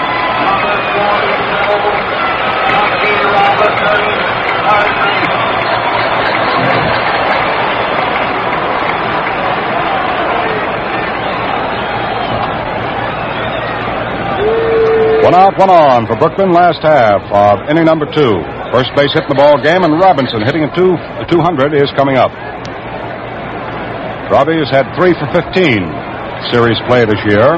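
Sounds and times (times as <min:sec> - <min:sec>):
ballpark crowd applause: 0:00.0 - 0:15.4
speech: 0:15.3 - 0:22.7, 0:24.3 - 0:27.5.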